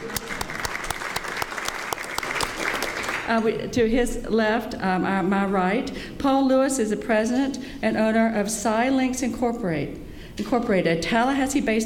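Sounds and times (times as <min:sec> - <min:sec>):
audience clapping: 0:00.0 - 0:03.4
speech: 0:03.3 - 0:11.8.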